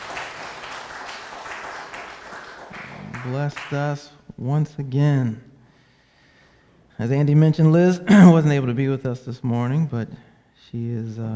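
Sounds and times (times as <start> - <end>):
audience applause: 0.0 - 3.7
speech: 3.2 - 5.5, 7.0 - 11.3.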